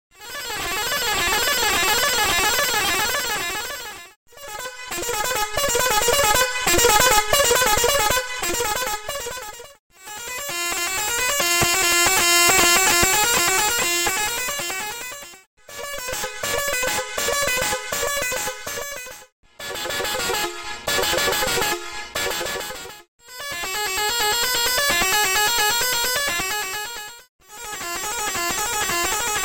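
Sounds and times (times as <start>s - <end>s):
tenor horn: 0.1s - 29.4s.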